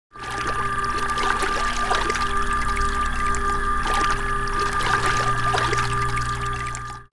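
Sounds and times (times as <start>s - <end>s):
medical pump running: 0.1s - 7.1s.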